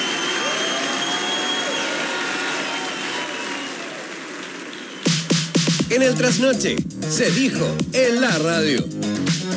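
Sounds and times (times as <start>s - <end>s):
audience applause: 0.0s - 6.6s
speech: 5.9s - 9.4s.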